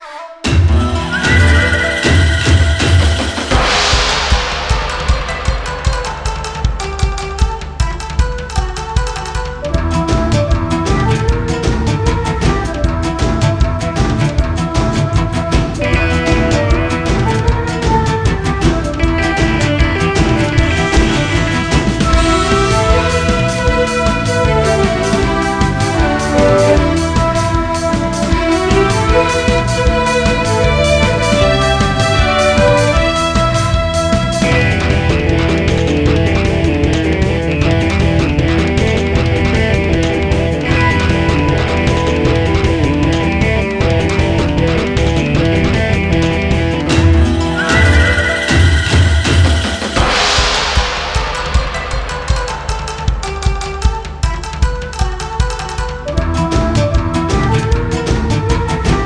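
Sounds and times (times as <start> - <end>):
boss battle background music: 0.4 - 59.0.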